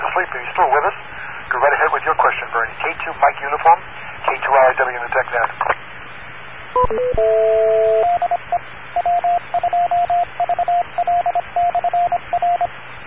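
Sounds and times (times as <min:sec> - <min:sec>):
speech: 0:00.2 - 0:05.8, 0:06.7 - 0:12.8
beep over radio net: 0:06.8 - 0:12.7.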